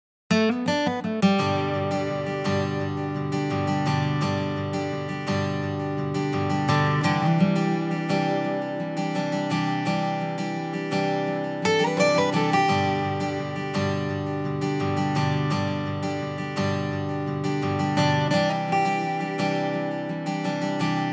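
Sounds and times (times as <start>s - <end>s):
six-string guitar: 0.3s - 21.1s.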